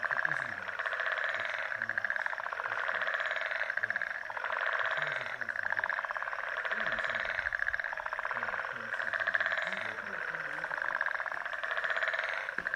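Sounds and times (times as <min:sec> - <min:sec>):
frog chorus in Mauritius: 0:00.0 - 0:12.7.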